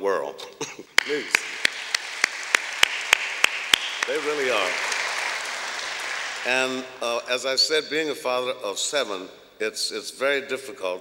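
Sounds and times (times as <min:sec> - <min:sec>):
audience applause: 0:01.0 - 0:07.5
crisp evenly spaced claps: 0:01.0 - 0:07.5
laughter: 0:01.0 - 0:07.6
speech: 0:06.4 - 0:10.9.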